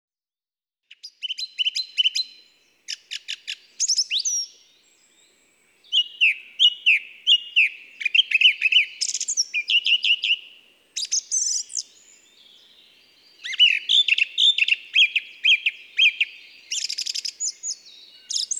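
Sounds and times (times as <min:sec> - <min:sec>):
song thrush singing: 0:00.9 - 0:18.5.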